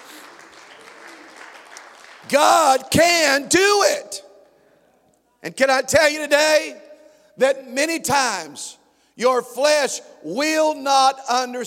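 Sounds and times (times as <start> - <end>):
crowd clapping: 0.0 - 2.8
speech: 2.2 - 4.3, 5.4 - 6.8, 7.4 - 11.6.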